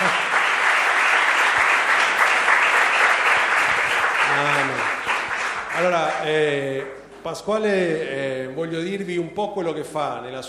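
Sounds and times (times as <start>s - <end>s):
audience applause: 0.0s - 7.0s
speech: 5.8s - 10.4s.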